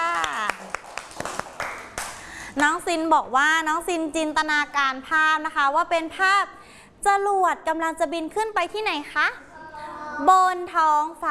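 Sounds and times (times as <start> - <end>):
children clapping for a classmate: 0.0 - 2.3
speech: 2.6 - 9.4, 10.2 - 11.2.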